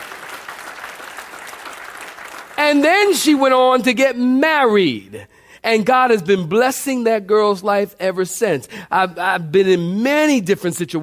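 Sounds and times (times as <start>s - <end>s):
audience clapping: 0.0s - 3.5s
speech: 2.6s - 11.0s.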